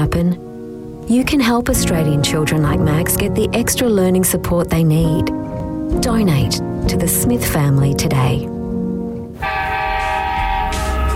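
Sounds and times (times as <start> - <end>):
speech: 0.0 - 0.5, 1.1 - 8.5
locomotive horn blaring: 9.4 - 11.1.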